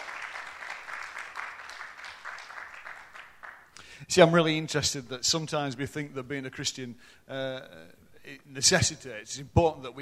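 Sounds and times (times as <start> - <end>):
audience applause: 0.0 - 3.7
speech: 4.0 - 10.0.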